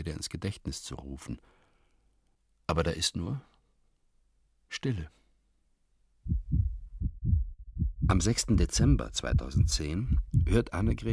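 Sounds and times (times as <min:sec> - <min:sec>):
speech: 0:00.0 - 0:01.6, 0:02.7 - 0:03.5, 0:04.7 - 0:05.2, 0:08.1 - 0:11.1
heartbeat heard through a stethoscope: 0:06.3 - 0:11.1.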